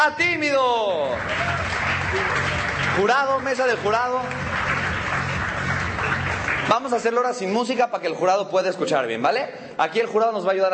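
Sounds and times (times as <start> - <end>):
speech: 0.0 - 1.5, 2.1 - 4.5, 6.7 - 10.7
audience applause: 0.3 - 7.4.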